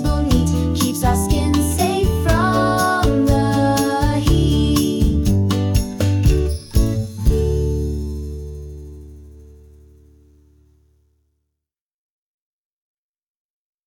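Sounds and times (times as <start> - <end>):
song: 0.0 - 8.7.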